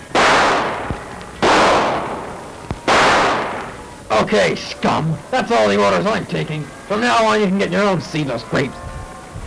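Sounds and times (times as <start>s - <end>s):
gunshots inside a supermarket: 0.0s - 4.0s
speech: 4.1s - 8.8s.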